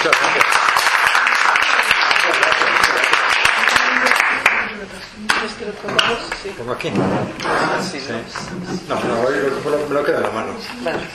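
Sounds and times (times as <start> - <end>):
audience applause welcoming a speaker: 0.0 - 4.8
speech: 5.8 - 11.1.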